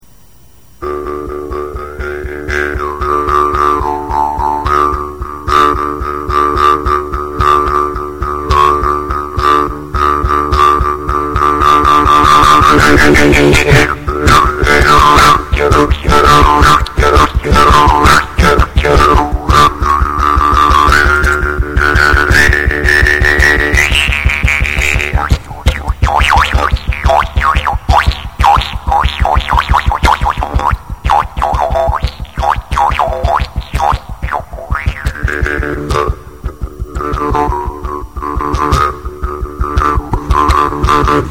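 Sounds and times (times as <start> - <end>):
jew's harp: 0.8 - 41.3.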